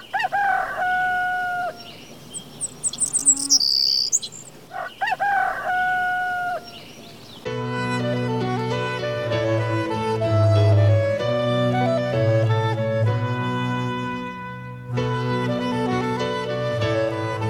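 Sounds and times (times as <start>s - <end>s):
birds chirping: 0.0s - 7.5s
rooster crowing: 0.2s - 1.8s, 2.9s - 6.7s
crickets chirring: 2.0s - 4.6s
music with sustained tones: 7.5s - 17.4s.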